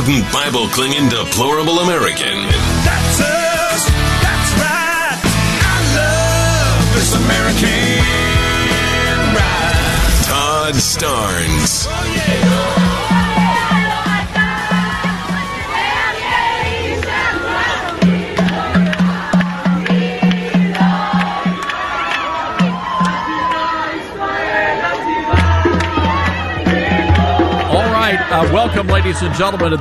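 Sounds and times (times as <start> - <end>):
speech: 0.0 - 4.9, 7.0 - 8.4, 10.3 - 13.1, 28.6 - 29.7
celebrating crowd cheering and chanting inside the airport in Tel Aviv: 0.0 - 29.7.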